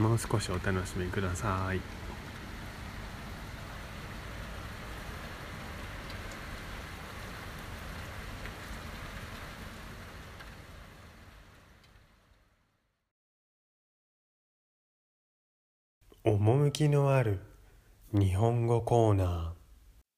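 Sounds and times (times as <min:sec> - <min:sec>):
steady rain recorded on an iPhone microphone: 0:00.0 - 0:12.8
speech: 0:00.1 - 0:02.1, 0:16.8 - 0:17.5, 0:18.1 - 0:19.6.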